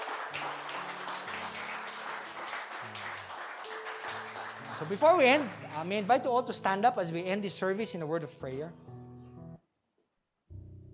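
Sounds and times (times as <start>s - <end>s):
congregation clapping at a church service: 0.0s - 6.6s
speech: 4.8s - 8.9s.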